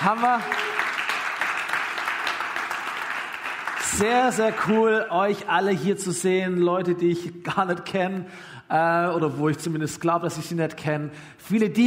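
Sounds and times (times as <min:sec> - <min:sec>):
speech: 0:00.0 - 0:00.7, 0:03.9 - 0:11.8
crowd clapping for the band: 0:00.0 - 0:05.0.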